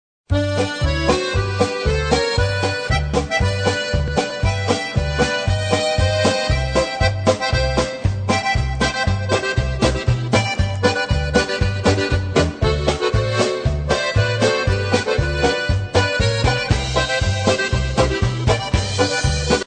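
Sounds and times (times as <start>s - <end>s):
polka music: 0.3s - 19.6s.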